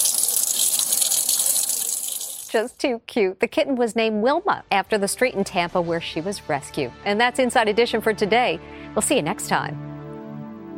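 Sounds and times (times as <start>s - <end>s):
water running from a tap for a kitten's bath: 0.0s - 2.8s
speech: 2.5s - 9.9s.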